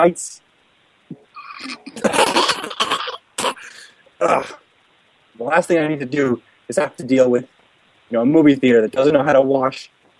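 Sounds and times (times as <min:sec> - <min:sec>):
speech: 0:00.0 - 0:00.4, 0:01.6 - 0:04.6, 0:05.4 - 0:10.0
person coughing: 0:01.5 - 0:04.6.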